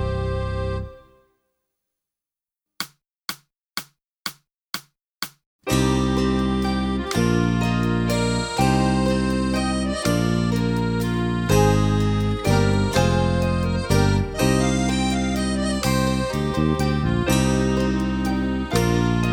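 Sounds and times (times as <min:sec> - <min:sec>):
chanson song: 0:00.0 - 0:01.1, 0:05.7 - 0:19.3
percussion: 0:02.8 - 0:19.3.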